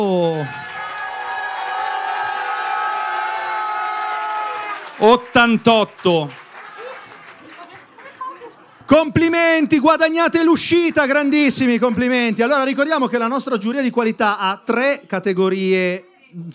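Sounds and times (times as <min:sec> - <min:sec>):
speech: 0:00.0 - 0:00.6, 0:05.0 - 0:06.4, 0:09.0 - 0:16.5
audience applause: 0:00.0 - 0:08.8
laughter: 0:06.6 - 0:08.9, 0:11.4 - 0:13.0.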